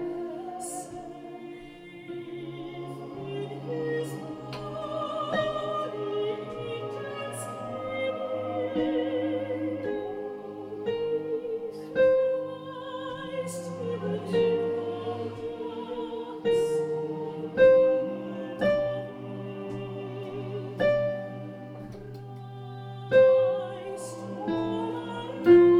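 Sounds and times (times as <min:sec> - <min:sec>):
soprano singing: 0:00.0 - 0:25.7.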